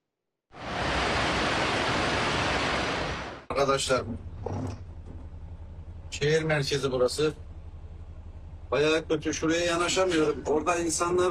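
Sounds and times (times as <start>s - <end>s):
floodwater rushing through the town centre of Havza after overflowing streams: 0.6s - 3.4s
speech: 3.7s - 4.8s, 6.2s - 7.4s, 8.7s - 11.2s.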